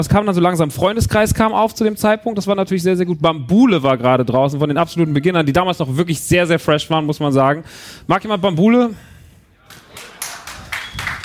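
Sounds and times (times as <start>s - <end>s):
speech: 0.0s - 9.1s
sparse clapping from a small audience at a hip-hop talk in Hamburg: 9.7s - 11.2s.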